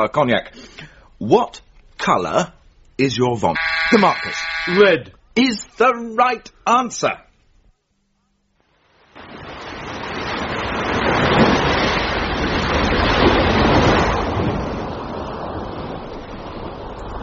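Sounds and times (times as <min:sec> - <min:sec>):
speech: 0:00.0 - 0:07.2
ocean waves and surf: 0:03.6 - 0:04.9, 0:08.7 - 0:17.2.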